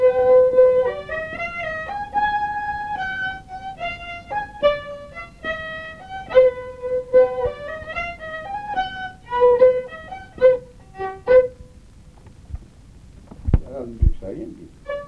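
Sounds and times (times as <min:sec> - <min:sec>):
waltz music: 0:00.0 - 0:11.9.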